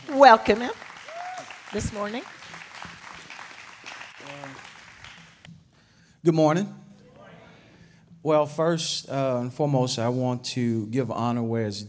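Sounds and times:
church congregation applauding a speaker: 0:00.0 - 0:05.5
speech: 0:00.1 - 0:00.8, 0:01.7 - 0:02.4, 0:06.2 - 0:06.8, 0:08.2 - 0:11.8.

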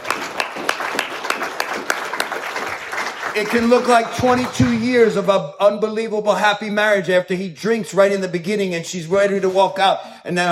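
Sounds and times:
audience clapping: 0:00.0 - 0:05.2
speech: 0:03.4 - 0:10.5.

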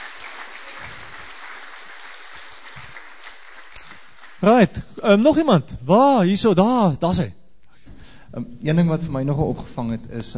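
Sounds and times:
audience clapping: 0:00.0 - 0:05.0
speech: 0:04.4 - 0:07.4, 0:08.3 - 0:10.3.

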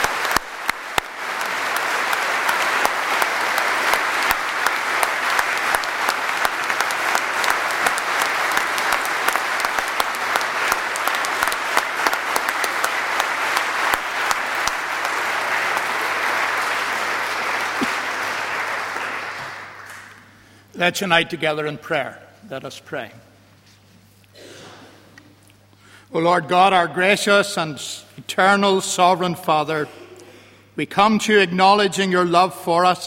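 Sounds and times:
large crowd clapping: 0:00.0 - 0:20.6
speech: 0:20.8 - 0:23.3, 0:26.1 - 0:30.0, 0:30.8 - 0:33.0.

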